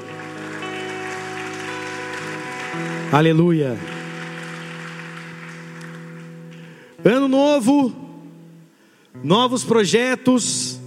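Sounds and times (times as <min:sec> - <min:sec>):
audience applause: 0:00.0 - 0:06.8
speech: 0:02.8 - 0:03.9, 0:07.0 - 0:08.0, 0:09.2 - 0:10.8.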